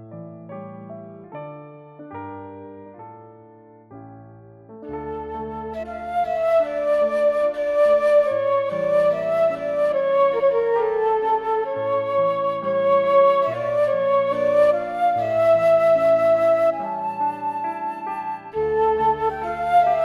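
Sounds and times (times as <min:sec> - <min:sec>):
piano: 0:00.0 - 0:20.0
flute: 0:04.8 - 0:20.0.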